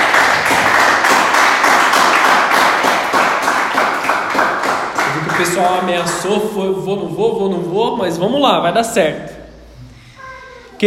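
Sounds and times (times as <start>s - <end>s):
audience clapping: 0.0s - 6.5s
speech: 5.4s - 9.3s.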